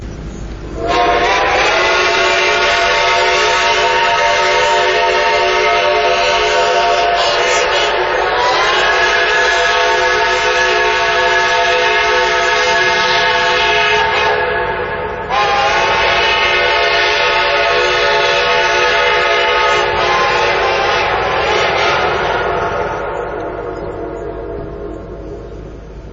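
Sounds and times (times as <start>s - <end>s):
horn: 0.8s - 25.0s.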